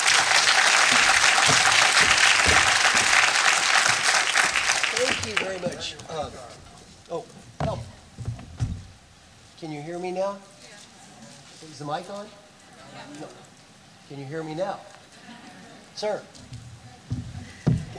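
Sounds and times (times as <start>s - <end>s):
audience clapping as a speaker is welcomed on stage: 0.0s - 6.0s
speech: 5.6s - 7.4s, 9.6s - 10.5s, 11.6s - 13.5s, 14.1s - 15.4s, 16.0s - 16.5s.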